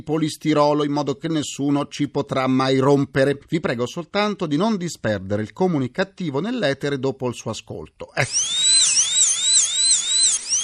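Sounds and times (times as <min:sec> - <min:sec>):
speech: 0:00.0 - 0:09.0
high-pitched dentist's drill whining: 0:08.2 - 0:10.6.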